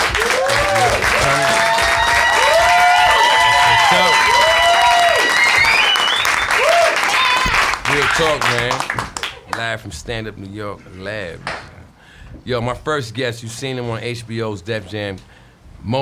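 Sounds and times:
crowd audience applause: 0.0 - 9.7
speech: 9.8 - 11.6, 12.3 - 16.0.

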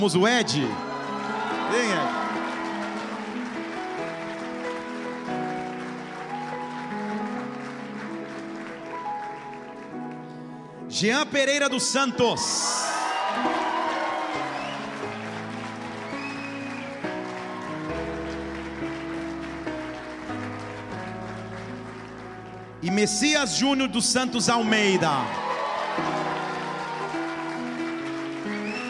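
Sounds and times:
speech: 0.0 - 0.9, 1.7 - 2.3, 11.0 - 13.7, 23.0 - 25.4
audience cheering: 0.0 - 9.2, 12.1 - 21.0, 24.2 - 28.8
audience applause: 0.0 - 10.2, 12.4 - 28.8.

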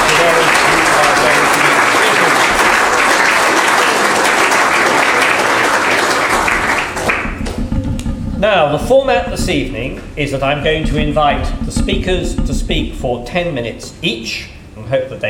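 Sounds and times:
audience applause: 0.0 - 7.6
speech: 8.6 - 15.2.

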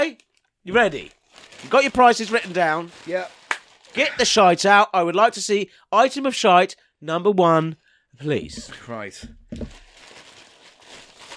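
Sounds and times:
speech: 0.1 - 9.8
rustling of newspaper wrapping: 0.7 - 4.2, 8.6 - 11.3.

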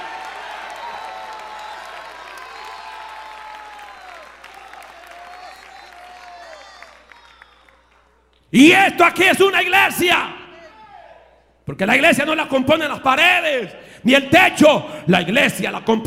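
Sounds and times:
crowd applauding: 0.0 - 8.4
crowd shouting praise and cheering: 0.0 - 11.5
speech: 8.5 - 10.4, 11.7 - 16.0.

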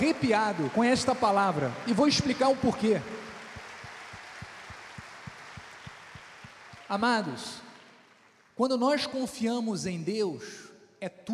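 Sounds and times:
audience applause: 0.0 - 8.6
speech: 0.1 - 3.2, 6.9 - 7.6, 8.6 - 11.3.

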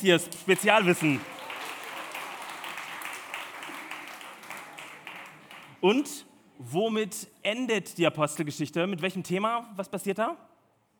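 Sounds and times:
speech: 0.0 - 1.4, 5.8 - 10.5
audience applause: 0.3 - 5.8.

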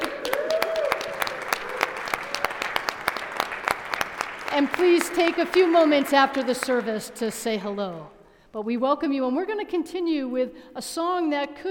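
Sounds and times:
person whooping: 0.0 - 2.5
congregation clapping to welcome newcomers at a morning church service: 0.0 - 8.2
speech: 4.6 - 11.6.

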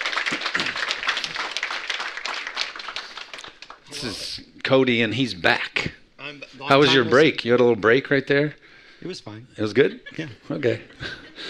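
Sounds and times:
audience applause at a church worship service welcoming the worship leader: 0.0 - 4.2
speech: 4.0 - 5.7, 6.7 - 11.2
laughter: 9.8 - 11.4.

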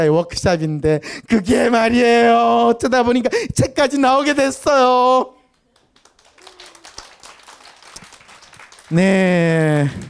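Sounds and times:
speech: 0.0 - 5.4, 8.9 - 10.0
audience applause: 5.7 - 10.0.

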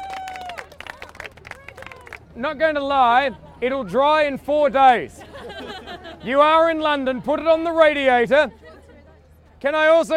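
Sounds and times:
audience applause: 0.0 - 2.2
speech: 2.4 - 5.6, 6.2 - 8.6, 9.6 - 10.1
laughter: 3.0 - 4.1, 5.0 - 9.2.

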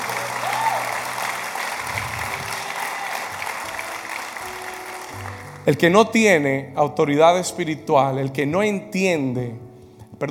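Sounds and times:
audience applause: 0.0 - 5.6
speech: 5.6 - 10.2.

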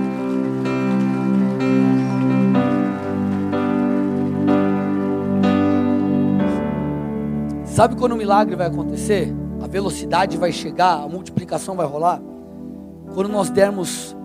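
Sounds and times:
audience applause: 0.0 - 6.6
sustained keyboard chords: 0.0 - 14.2
speech: 7.8 - 12.3, 13.1 - 14.2.

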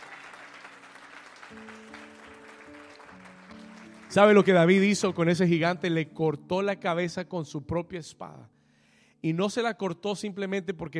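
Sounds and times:
audience applause: 0.0 - 5.0
organ or keyboard chords: 0.0 - 7.2
speech: 1.5 - 2.0, 4.1 - 8.6, 9.2 - 10.9.

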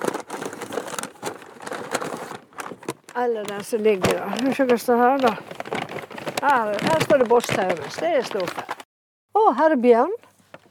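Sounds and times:
old plastic bags crinkling and rustling: 0.0 - 8.9
speech: 3.2 - 5.6, 6.4 - 8.7, 9.5 - 10.2.

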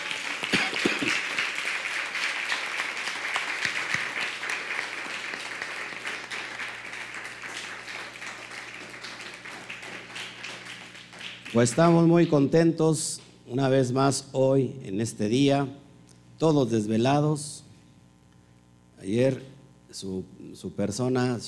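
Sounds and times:
audience applause: 0.0 - 12.1
speech: 11.5 - 15.8, 16.4 - 17.6, 19.0 - 21.4.

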